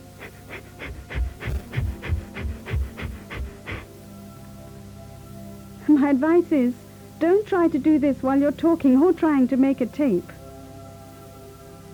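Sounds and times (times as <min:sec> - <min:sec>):
forceful diaphragm breathing exhalations: 0:00.0 - 0:04.0
speech: 0:06.0 - 0:10.4.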